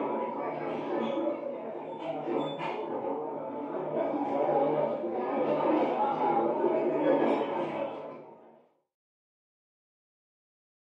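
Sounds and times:
busy adult walla in a bar, from next room: 0.0s - 8.7s.

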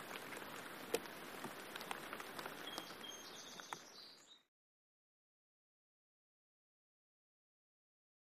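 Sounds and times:
light rain: 0.0s - 4.4s.

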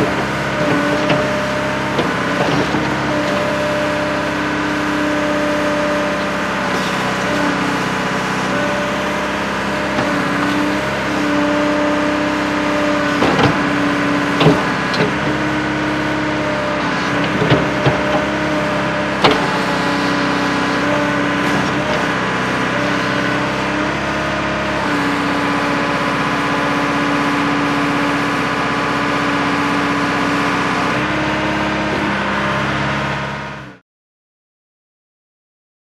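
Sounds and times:
JCB digger clanks: 0.0s - 27.7s
JCB digger engine revving high: 0.0s - 33.8s.

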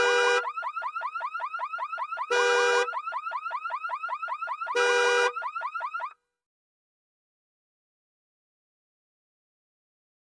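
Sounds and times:
car alarm sounding rapidly: 0.0s - 6.2s.

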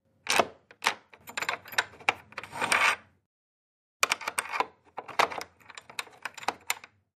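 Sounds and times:
keys locking and unlocking a wood door: 0.2s - 2.4s, 4.0s - 7.0s.

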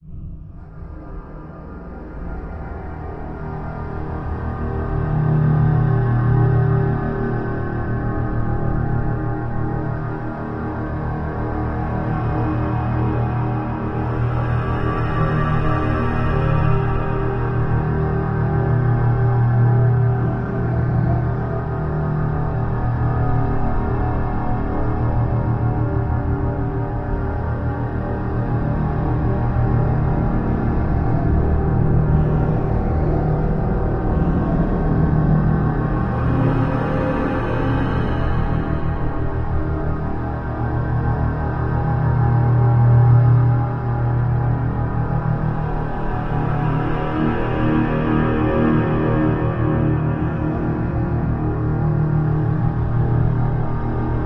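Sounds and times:
deep resonant hum: 0.0s - 54.2s.

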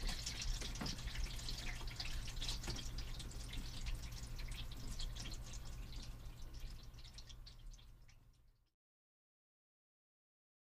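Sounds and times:
toilet flushing upstairs: 0.0s - 6.9s.

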